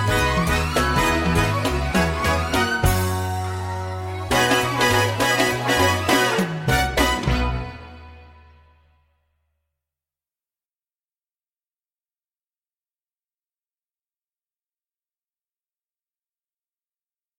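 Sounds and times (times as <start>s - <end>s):
accompaniment in B-flat: 0.0s - 8.5s.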